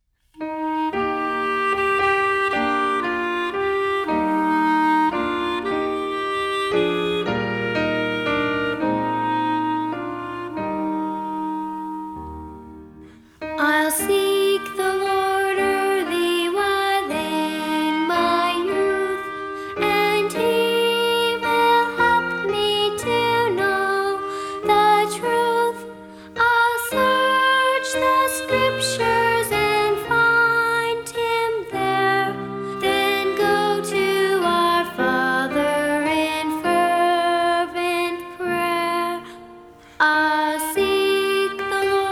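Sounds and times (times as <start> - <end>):
music: 0.3 - 42.1.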